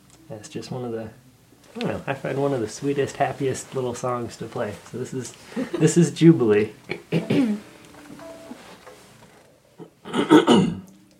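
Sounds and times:
speech: 0.3s - 7.6s
throat clearing after a taco dinner: 6.9s - 7.6s, 9.8s - 10.9s.

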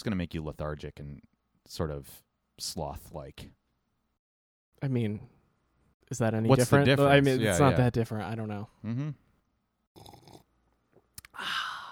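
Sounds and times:
speech: 0.0s - 3.6s, 4.8s - 5.4s, 6.1s - 9.2s
slurping a drink: 10.0s - 10.5s.

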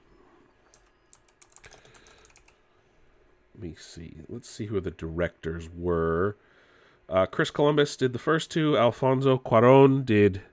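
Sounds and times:
quiet hiss: 0.0s - 10.5s
faint typing on a computer keyboard: 0.6s - 2.6s
speech: 3.6s - 6.5s, 7.1s - 10.5s.

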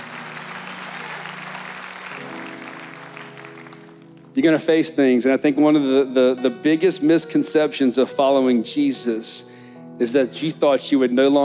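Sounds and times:
audience clapping hands: 0.0s - 4.5s
speech: 4.4s - 11.4s.

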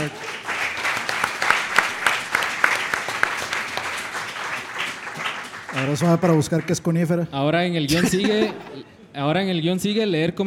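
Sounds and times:
applause: 0.0s - 7.1s
speech: 5.8s - 10.4s
laughter: 7.9s - 9.1s.

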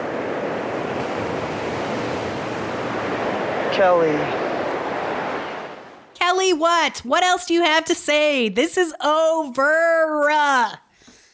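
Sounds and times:
surf washing onto a shore: 0.0s - 6.1s
speech: 3.8s - 4.4s, 6.3s - 10.8s.

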